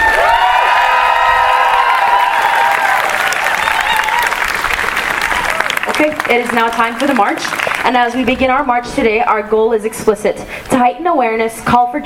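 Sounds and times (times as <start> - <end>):
crowd applause for rally speakers: 0.0 - 8.2
speech: 6.3 - 12.0.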